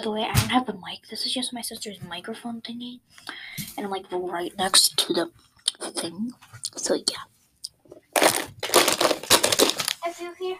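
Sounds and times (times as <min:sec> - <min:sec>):
speech: 0:00.0 - 0:08.3, 0:10.0 - 0:10.5
crunching Funyun chips: 0:08.1 - 0:10.0.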